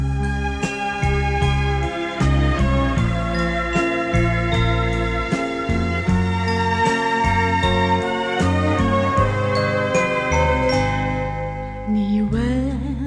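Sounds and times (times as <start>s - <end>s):
soft sustained chords: 0.2s - 12.3s
wavering vibrato-rich melody line: 3.0s - 12.9s
chiming bell-like notes in a Chinese pop ballad intro: 3.3s - 12.3s.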